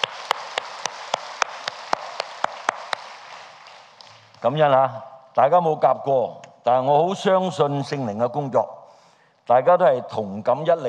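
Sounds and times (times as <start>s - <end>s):
audience applause: 0.0s - 4.4s
speech: 4.4s - 8.8s, 9.5s - 10.8s.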